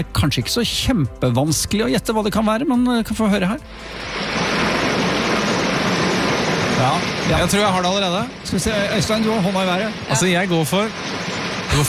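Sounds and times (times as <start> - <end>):
speech: 0.0 - 4.4, 6.8 - 11.8
small trickling brook: 3.7 - 11.8.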